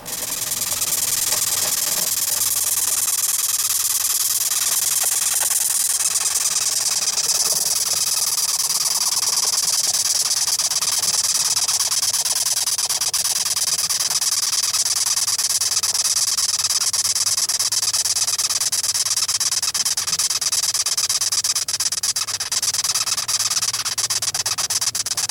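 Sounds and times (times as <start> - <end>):
velvet ant crawling inside a cardboard box: 0.0 - 25.2.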